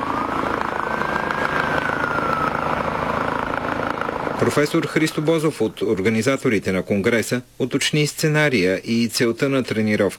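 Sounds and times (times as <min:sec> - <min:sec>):
air ambulance helicopter arriving: 0:00.0 - 0:06.7
speech: 0:04.4 - 0:10.1.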